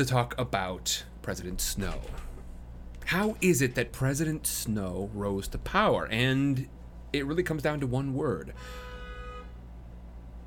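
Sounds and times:
speech: 0.0 - 2.3, 3.1 - 8.9
car horns honking outside: 8.5 - 9.8.

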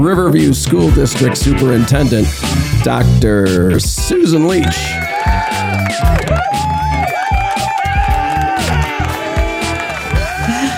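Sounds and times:
speech: 0.0 - 6.8
studio audience cheering and applause: 4.5 - 10.7
whoops and shouts: 4.9 - 10.7.

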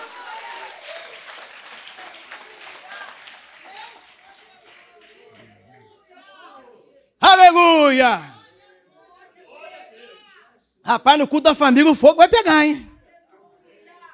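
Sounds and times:
audience applauding: 0.0 - 5.7
speech: 7.5 - 8.3, 10.9 - 12.9.

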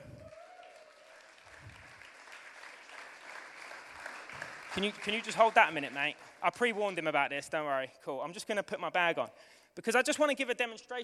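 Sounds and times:
audience applause: 0.0 - 6.6
speech: 4.8 - 11.0.

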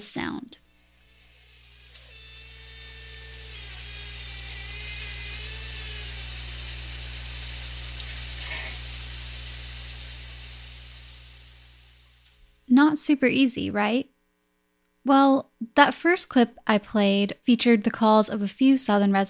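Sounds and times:
speech: 0.1 - 0.6, 12.8 - 14.1, 15.1 - 19.2
boat winch running: 1.4 - 8.9.

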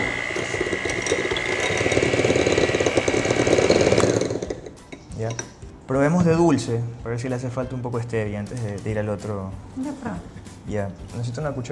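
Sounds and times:
electric mixer mixing batter: 0.0 - 4.8
speech: 5.9 - 11.7.

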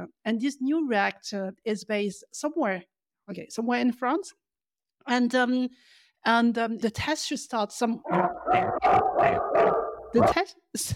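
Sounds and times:
speech: 0.0 - 4.4, 5.0 - 10.9
dog barking excitedly: 8.1 - 10.4.

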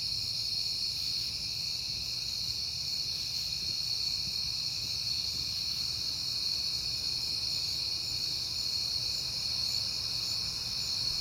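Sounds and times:
crickets chirring at night in September: 0.0 - 11.2.

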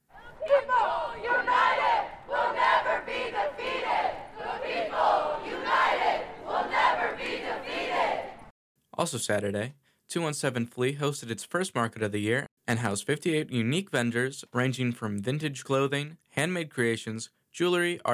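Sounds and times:
protesters chanting at a rally: 0.1 - 8.5
speech: 9.1 - 18.1.

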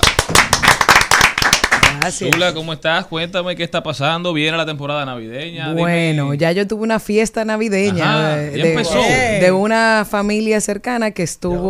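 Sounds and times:
audience clapping: 0.0 - 2.6
speech: 2.0 - 11.6.

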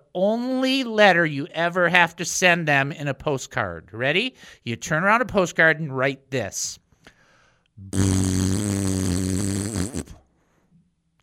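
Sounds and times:
speech: 0.2 - 6.8, 7.8 - 8.2
Bronx cheer raspberry blown with lips: 7.8 - 10.3.

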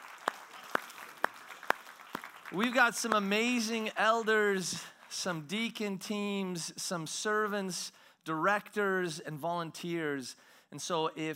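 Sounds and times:
audience round of applause: 0.0 - 3.6
speech: 2.5 - 11.3.

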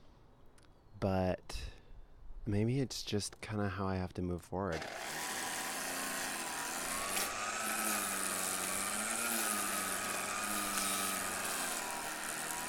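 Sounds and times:
speech: 1.0 - 1.4, 2.4 - 5.2
two-stroke weed trimmer engine running: 4.7 - 12.6.

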